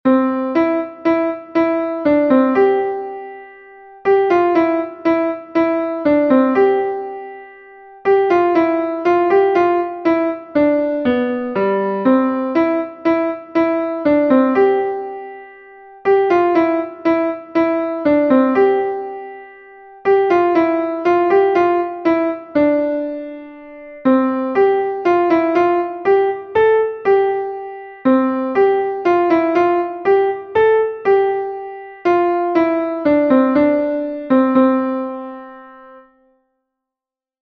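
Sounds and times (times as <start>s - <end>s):
classical piano piece: 0.1s - 36.2s.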